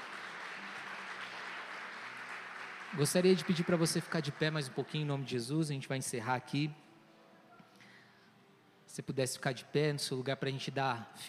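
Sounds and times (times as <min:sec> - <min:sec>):
church congregation clapping after a closing prayer: 0:00.0 - 0:05.5
speech: 0:02.9 - 0:06.8, 0:09.0 - 0:11.2.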